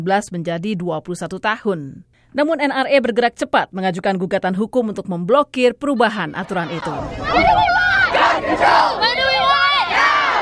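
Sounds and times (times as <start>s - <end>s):
speech: 0.0s - 7.7s, 8.4s - 9.2s
protest rally crowd shouting: 6.3s - 10.4s.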